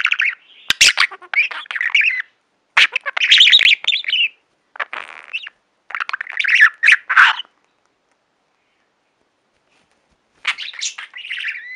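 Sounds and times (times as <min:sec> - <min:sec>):
budgerigar chatter of chirps and squawks: 0:00.0 - 0:07.5, 0:10.4 - 0:11.7.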